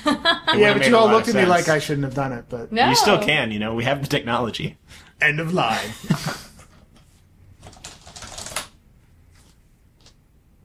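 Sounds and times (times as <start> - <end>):
speech: 0.5 - 6.5
typing a password on a computer keyboard: 7.6 - 8.8.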